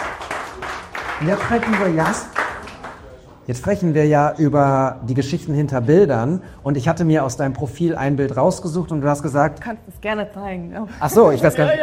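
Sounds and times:
audience applause from a small group: 0.0 - 3.1
speech: 1.2 - 2.4, 3.5 - 11.8.

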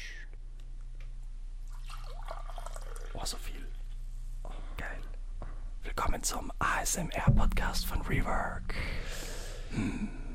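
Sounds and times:
green tea being poured into a cup: 1.7 - 3.8
speech: 3.2 - 3.6, 5.9 - 10.2
low hum: 4.1 - 10.3.

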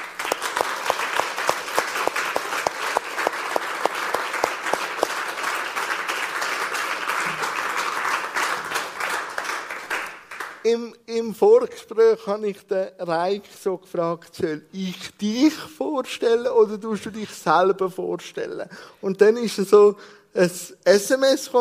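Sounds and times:
warm applause from audience: 0.0 - 10.6
speech: 10.7 - 21.5.

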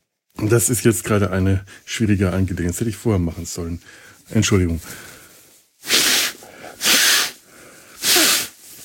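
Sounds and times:
speech: 0.4 - 5.1
quiet breathing: 1.6 - 2.0, 3.7 - 5.8, 6.4 - 6.8, 7.4 - 8.0
person snorting through a blocked broken nose: 5.8 - 7.4, 8.0 - 8.6.

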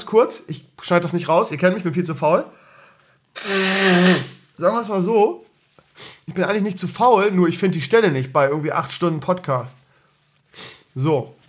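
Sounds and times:
speech: 0.1 - 2.6, 3.4 - 5.4, 6.0 - 9.8, 10.6 - 11.4
nose blowing: 3.3 - 4.5.

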